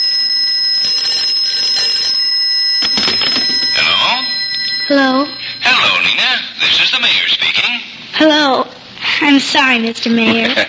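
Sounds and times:
telephone bell ringing with a shrill metallic trill: 0:00.0 - 0:06.9
speech: 0:04.9 - 0:05.4, 0:06.3 - 0:10.6.

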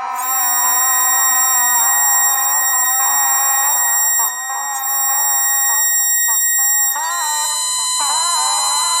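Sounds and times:
bagpipe: 0:00.1 - 0:08.9.

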